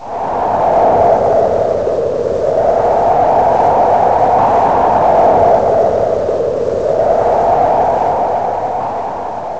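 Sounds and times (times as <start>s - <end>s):
storm: 0.0s - 9.5s.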